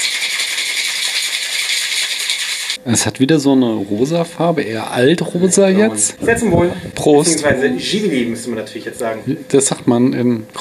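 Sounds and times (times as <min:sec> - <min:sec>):
pink cocktail shaker being shaken: 0:00.0 - 0:02.8
speech: 0:02.8 - 0:10.6.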